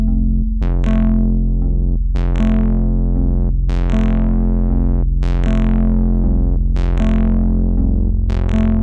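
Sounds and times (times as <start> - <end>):
Moog modular synthesizer: 0.0 - 8.8.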